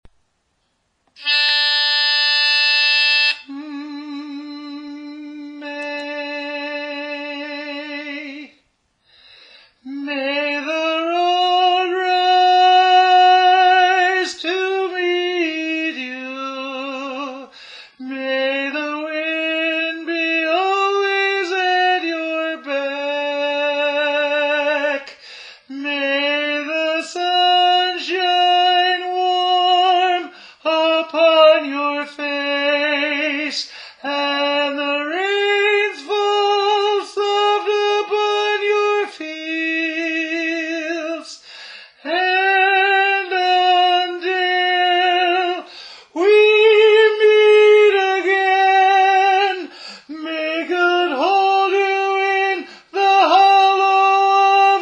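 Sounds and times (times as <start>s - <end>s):
tenor singing: 1.2s - 8.6s, 9.8s - 54.8s.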